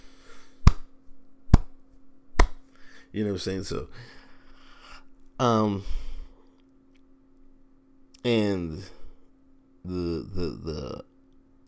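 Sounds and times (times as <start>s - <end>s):
low steady hum: 0.0s - 11.6s
slow hand claps: 0.6s - 0.9s, 1.5s - 1.8s, 2.4s - 2.6s
speech: 3.1s - 4.2s, 5.4s - 6.1s, 8.2s - 9.0s, 9.8s - 11.1s.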